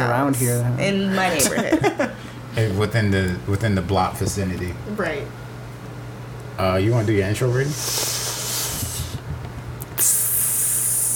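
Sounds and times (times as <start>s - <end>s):
low steady hum: 0.0s - 11.1s
speech: 0.3s - 5.4s, 6.6s - 8.2s
person imitating a snake's hiss: 7.7s - 9.2s, 10.0s - 11.1s.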